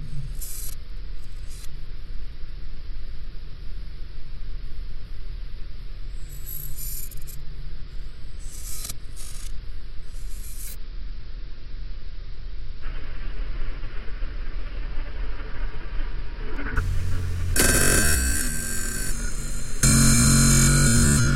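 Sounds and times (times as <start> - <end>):
soundscape: 12.8 - 21.3.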